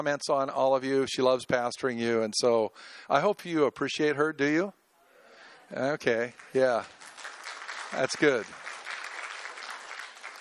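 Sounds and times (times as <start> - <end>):
speech: 0.0 - 4.8, 5.7 - 7.3, 7.9 - 8.6
crowd clapping: 6.0 - 10.3.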